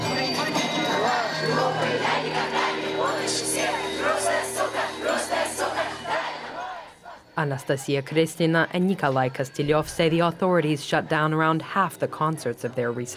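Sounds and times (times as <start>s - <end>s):
concert crowd chanting: 0.0s - 7.6s
speech: 7.4s - 13.1s.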